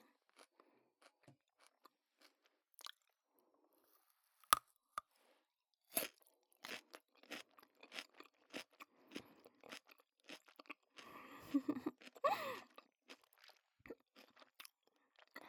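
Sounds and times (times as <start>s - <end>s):
person biting and chewing something juicy and crunchy: 0.1s - 3.1s, 6.0s - 15.3s.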